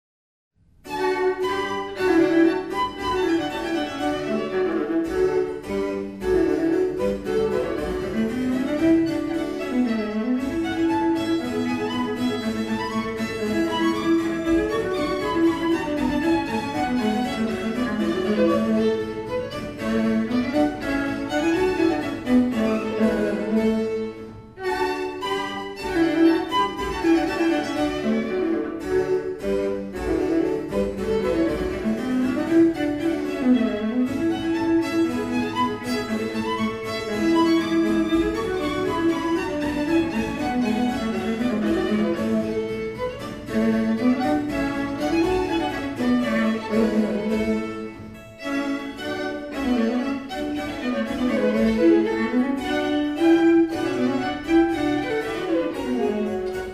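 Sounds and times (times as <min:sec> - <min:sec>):
sonata in D major: 0:00.6 - 0:56.7.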